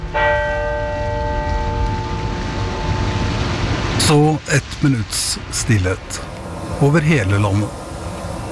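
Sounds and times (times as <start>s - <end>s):
church bells tolling: 0.0s - 4.0s
speech: 4.1s - 7.8s.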